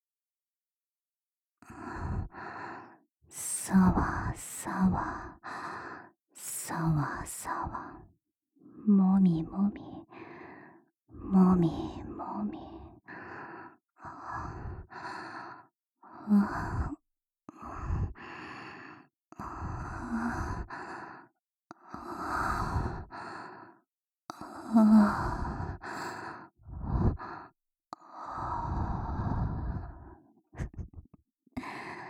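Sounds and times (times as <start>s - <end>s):
close-miked ASMR breathing into a microphone: 1.7s - 3.0s, 5.0s - 6.1s, 10.1s - 10.9s, 12.7s - 15.7s, 16.4s - 23.8s, 24.4s - 31.0s, 31.6s - 32.0s
speech: 3.3s - 5.6s, 6.4s - 10.3s, 11.1s - 12.8s, 16.2s - 16.8s.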